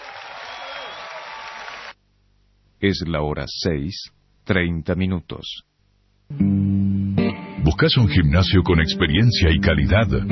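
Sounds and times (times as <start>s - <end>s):
audience applause: 0.0s - 2.0s
speech: 2.8s - 5.7s, 6.3s - 10.2s.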